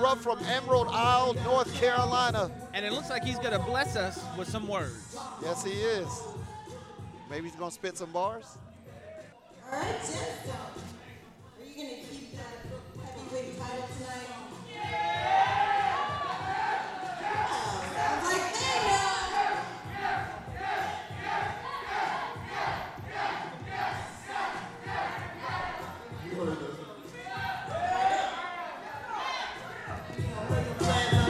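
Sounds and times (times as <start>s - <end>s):
speech: 0.1s - 6.5s, 7.3s - 8.6s, 9.7s - 10.9s
crowd shouting yeah: 14.6s - 26.4s, 27.0s - 31.2s.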